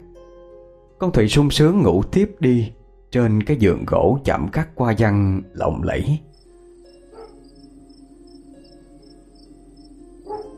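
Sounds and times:
speech: 0:01.0 - 0:06.3
dogs barking in a small village at night: 0:07.1 - 0:07.5, 0:10.2 - 0:10.5.

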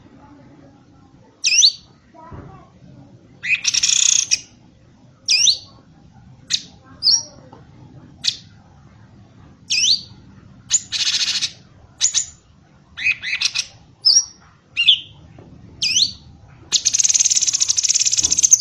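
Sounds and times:
bird song of sharp high chirps, slurred whistles and buzzy rattles: 0:01.4 - 0:01.9, 0:03.4 - 0:04.5, 0:05.3 - 0:05.8, 0:09.7 - 0:12.4, 0:13.0 - 0:15.2, 0:15.8 - 0:18.5.

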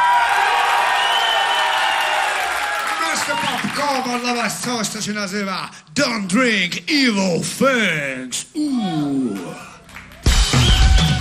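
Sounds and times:
audience shouting and cheering: 0:00.0 - 0:04.0, 0:08.8 - 0:11.1
speech: 0:03.8 - 0:09.7.

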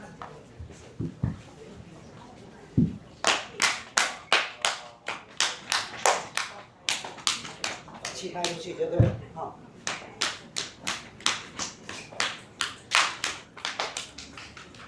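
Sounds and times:
low murmuring: 0:00.0 - 0:14.8
soft taps: 0:00.2 - 0:01.5, 0:02.8 - 0:03.1
hands clapping in a traditional Chinese medicine self-treatment practice: 0:02.9 - 0:08.8, 0:09.8 - 0:14.8.

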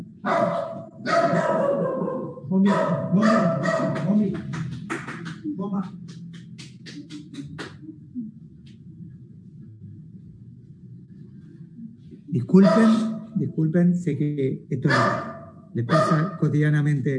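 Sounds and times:
dog barking: 0:00.2 - 0:04.2, 0:12.5 - 0:13.4, 0:14.9 - 0:16.4
speech: 0:02.5 - 0:04.6, 0:05.6 - 0:06.1, 0:12.5 - 0:17.1.

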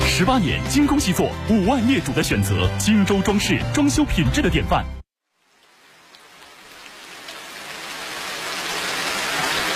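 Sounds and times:
speech: 0:00.2 - 0:05.0
rain falling: 0:05.2 - 0:09.7.

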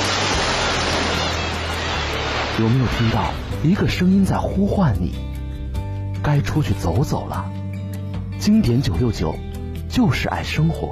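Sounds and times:
ocean waves surging: 0:00.0 - 0:04.4
speech: 0:02.6 - 0:05.3, 0:06.2 - 0:07.6, 0:08.4 - 0:10.9.

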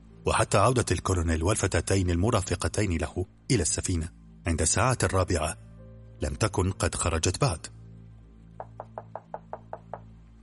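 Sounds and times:
speech: 0:00.2 - 0:07.8
knocking on a cabin door: 0:08.6 - 0:10.2.

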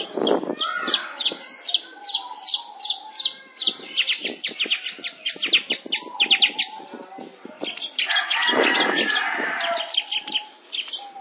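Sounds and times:
long-tailed shrike song of varied notes: 0:00.0 - 0:06.9, 0:07.6 - 0:11.2.

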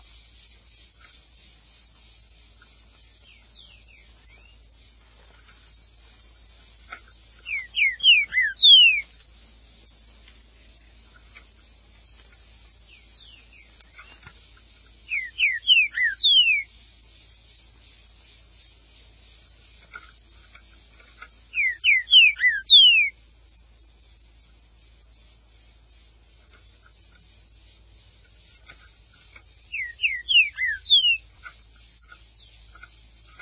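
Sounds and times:
green-winged saltator song: 0:02.8 - 0:04.7, 0:06.7 - 0:09.2, 0:12.1 - 0:14.4, 0:15.0 - 0:16.8, 0:21.5 - 0:23.2, 0:29.6 - 0:31.4.

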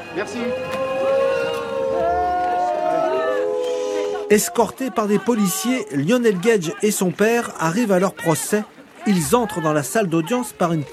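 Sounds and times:
courtroom crowd murmuring: 0:00.0 - 0:06.9
speech: 0:00.2 - 0:00.9, 0:04.3 - 0:10.9.

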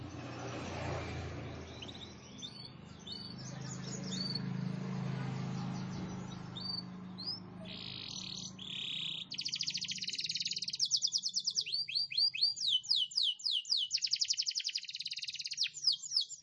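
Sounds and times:
canary song with loud rapid trills and rolling buzzy phrases: 0:00.0 - 0:16.4.

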